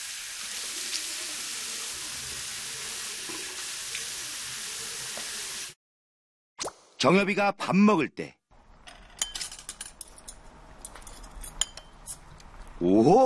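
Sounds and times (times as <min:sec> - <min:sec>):
tap water running while someone washes their face: 0:00.0 - 0:05.8
speech: 0:07.0 - 0:08.4, 0:12.8 - 0:13.2.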